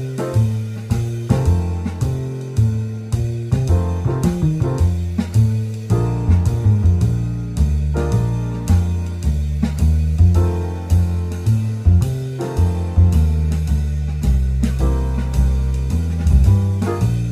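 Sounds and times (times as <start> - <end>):
basic swing blues in F: 0.0 - 17.2.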